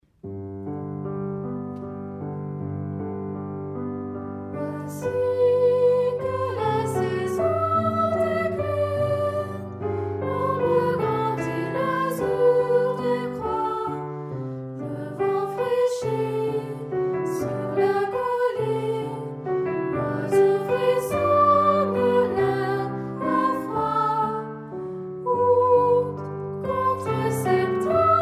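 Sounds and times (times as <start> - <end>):
piano: 0.0 - 28.2
chanting: 4.7 - 14.2, 14.8 - 19.2, 20.0 - 24.6, 25.3 - 28.2.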